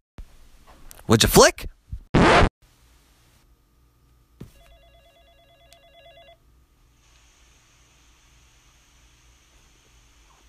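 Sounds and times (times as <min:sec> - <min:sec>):
speech: 0:01.1 - 0:01.7
telephone ringing: 0:04.5 - 0:06.4.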